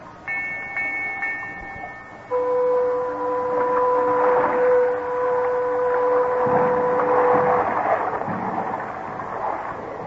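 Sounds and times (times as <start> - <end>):
rumbling churning background: 1.0 - 10.0
riverboat high steam whistle: 2.3 - 7.7
riverboat sustained horn blast: 2.3 - 7.9.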